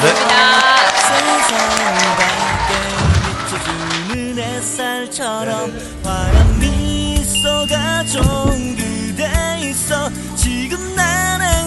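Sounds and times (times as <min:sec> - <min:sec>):
audience applause: 0:00.0 - 0:04.2
music: 0:00.6 - 0:11.6.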